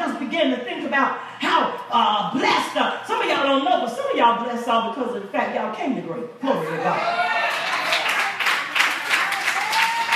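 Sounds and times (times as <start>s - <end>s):
speech: 0.3s - 7.4s
audience clapping: 7.5s - 10.1s.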